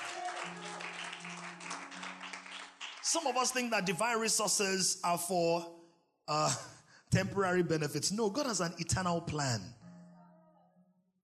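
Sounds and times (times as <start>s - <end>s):
audience clapping: 0.0s - 3.9s
speech: 3.1s - 9.8s.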